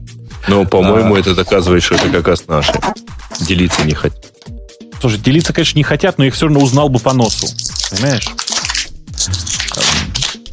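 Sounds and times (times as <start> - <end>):
speech: 0.4 - 4.4, 5.0 - 8.4
tea bag packet being unwrapped: 6.6 - 10.5.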